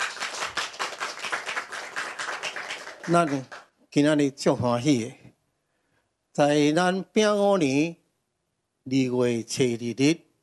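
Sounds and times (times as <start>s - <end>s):
audience clapping: 0.0s - 3.8s
speech: 3.1s - 5.2s, 6.4s - 8.0s, 8.8s - 10.2s.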